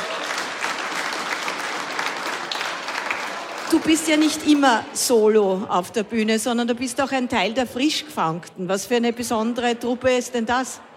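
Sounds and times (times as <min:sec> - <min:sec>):
audience applause: 0:00.0 - 0:04.6
speech: 0:03.8 - 0:10.9.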